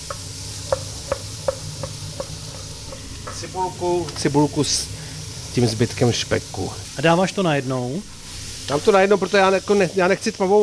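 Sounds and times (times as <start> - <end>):
small pops or ticks of frying: 0.0 - 3.4
carrot, celery and parsley root frying in pan drippings: 0.0 - 10.6
speech: 3.4 - 4.9, 5.6 - 10.6.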